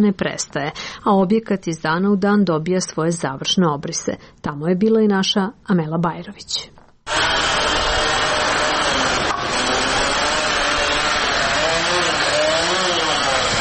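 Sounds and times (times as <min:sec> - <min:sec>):
speech: 0:00.0 - 0:07.4
construction site concrete mixers: 0:07.1 - 0:13.6
construction site drills: 0:07.1 - 0:13.6.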